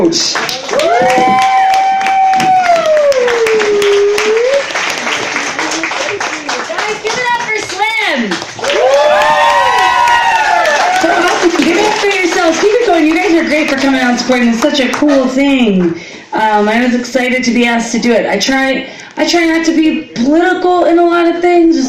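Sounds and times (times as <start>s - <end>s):
speech: 0.0s - 1.5s, 13.8s - 21.8s
crowd applause: 0.4s - 14.0s
whoops and cheering voices: 0.6s - 4.7s, 8.6s - 11.4s.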